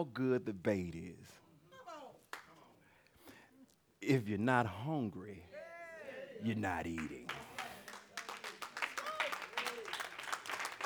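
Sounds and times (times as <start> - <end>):
speech: 0.0 - 1.4, 4.0 - 5.6, 6.4 - 7.4
audience hand clapping: 6.9 - 10.8.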